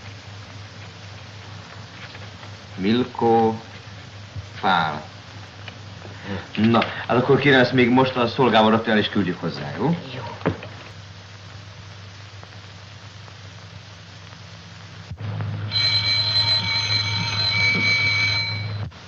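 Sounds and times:
speech: 2.8s - 3.7s, 4.6s - 5.1s, 6.3s - 10.3s
doorbell ringing: 15.7s - 18.9s.

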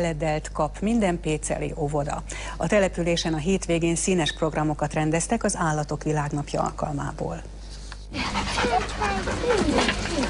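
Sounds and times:
speech: 0.0s - 7.6s, 8.4s - 10.2s
shelter dogs panting at a World Animal Day event in Pécel: 8.1s - 10.2s.

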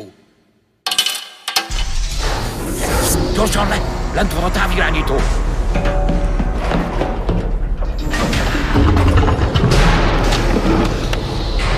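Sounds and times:
two coins being tried in a hangar: 0.9s - 1.7s
sustained low rumbling noise: 1.7s - 11.7s
speech: 3.4s - 6.0s.

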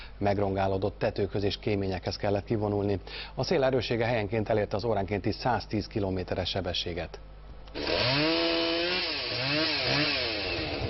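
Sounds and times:
speech: 0.2s - 8.3s
chainsaw cutting down a tree by firefighters: 7.7s - 10.8s.

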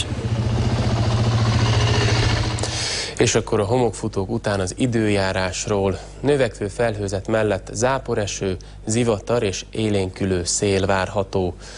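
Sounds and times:
police quad bike engine running during testing: 0.0s - 2.9s
speech: 3.2s - 11.7s.

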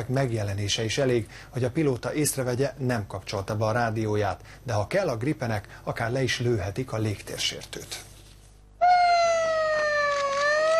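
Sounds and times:
speech: 0.0s - 8.1s
air base scramble alarm siren: 8.8s - 10.7s.

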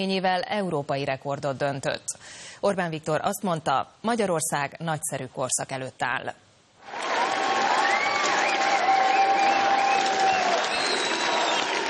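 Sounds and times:
speech: 0.0s - 7.0s
crowd clapping: 6.8s - 11.8s
whistles from crowd: 7.6s - 11.8s.

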